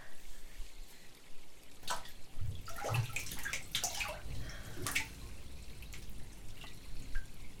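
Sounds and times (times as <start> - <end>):
water dripping: 1.6 - 7.5.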